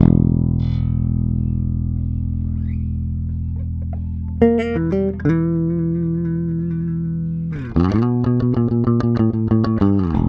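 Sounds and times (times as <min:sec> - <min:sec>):
rock bass guitar: 0:00.0 - 0:10.2.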